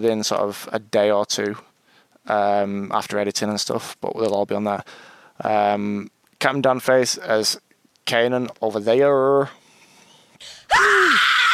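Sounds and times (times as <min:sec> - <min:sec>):
speech: 0:00.0 - 0:01.7, 0:02.3 - 0:09.6, 0:10.4 - 0:11.5
man screaming: 0:10.7 - 0:11.5.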